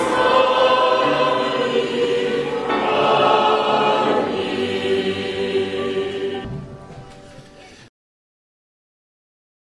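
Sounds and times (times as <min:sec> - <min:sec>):
group singing: 0:00.0 - 0:06.7.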